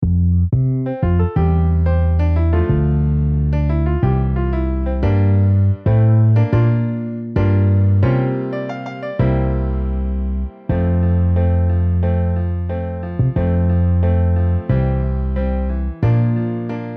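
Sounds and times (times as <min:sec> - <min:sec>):
MIDI piano and bass: 0:00.0 - 0:16.9.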